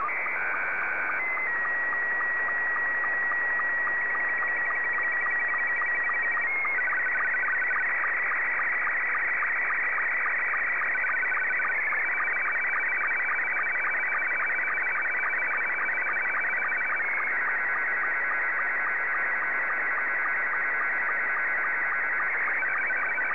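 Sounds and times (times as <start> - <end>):
Scottie 2 slow-scan television signal: 0.0 - 23.3.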